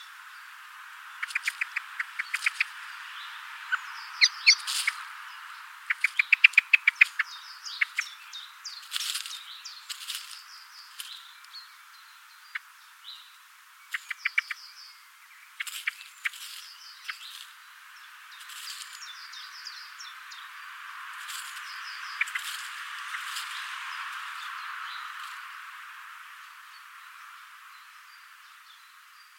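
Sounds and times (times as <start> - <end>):
Common blackbird harsh chattering call: 1.2 - 2.8, 3.6 - 5.1, 5.8 - 11.2, 13.8 - 14.8, 15.5 - 17.6, 21.3 - 25.4.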